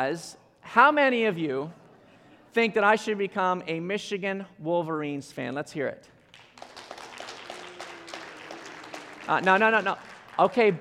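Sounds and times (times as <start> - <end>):
speech: 0.0 - 1.8, 2.5 - 6.1, 9.3 - 10.7
crowd booing: 7.0 - 10.7.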